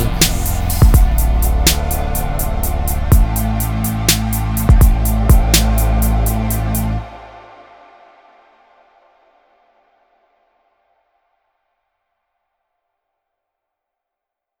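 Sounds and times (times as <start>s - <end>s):
rap music: 0.0s - 7.7s.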